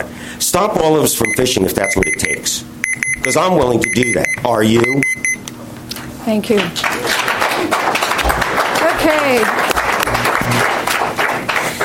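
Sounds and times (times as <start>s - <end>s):
speech: 0.0s - 5.1s, 6.3s - 7.0s, 9.0s - 9.6s
audience clapping at a public hearing on fishing: 6.5s - 11.8s.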